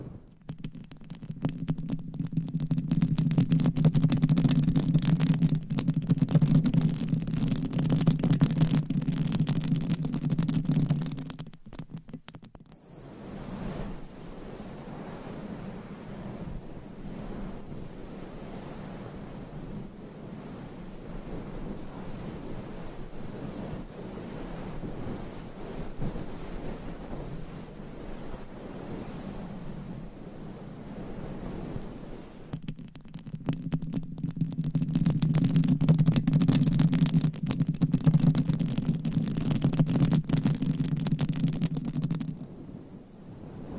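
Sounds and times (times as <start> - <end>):
nails scratching over a microphone cover: 0.4 - 12.8, 32.5 - 42.5.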